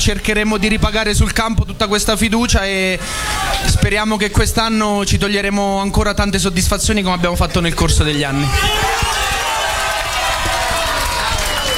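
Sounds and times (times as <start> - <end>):
speech: 0.0 - 9.0
large crowd cheering and applauding: 8.4 - 11.7.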